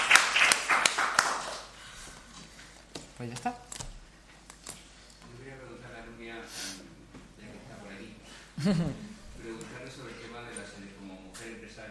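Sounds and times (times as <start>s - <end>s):
scattered hand claps at a press conference after an awards gala: 0.0s - 1.8s
speech: 3.2s - 3.7s, 8.6s - 9.0s
laughter: 8.6s - 10.4s.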